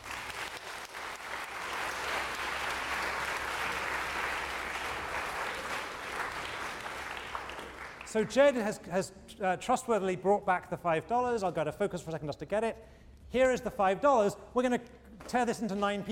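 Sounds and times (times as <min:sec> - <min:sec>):
audience applause for winners: 0:00.0 - 0:08.2
speech: 0:08.1 - 0:16.0.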